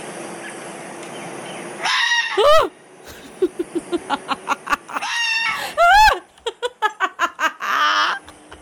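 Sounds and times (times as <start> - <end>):
fox scream: 1.8 - 2.7, 4.9 - 6.2, 7.6 - 8.3
laughter: 3.1 - 8.6.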